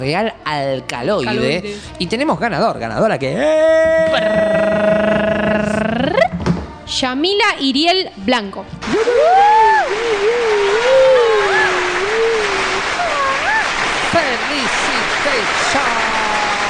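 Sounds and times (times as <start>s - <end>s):
speech: 0.0s - 5.2s, 6.9s - 10.7s
crowd applause: 3.9s - 5.8s, 8.8s - 16.6s.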